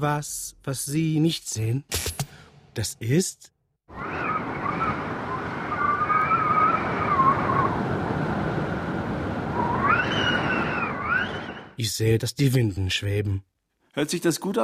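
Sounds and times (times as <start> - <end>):
speech: 0.0 - 2.2, 2.8 - 4.4, 11.8 - 14.6
coastal sea waves on the North Sea shore: 3.9 - 11.7.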